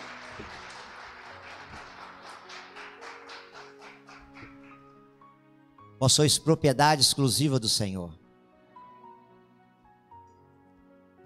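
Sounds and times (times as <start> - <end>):
crowd clapping rhythmically: 0.0 - 5.0
speech: 0.4 - 0.6, 6.0 - 8.2.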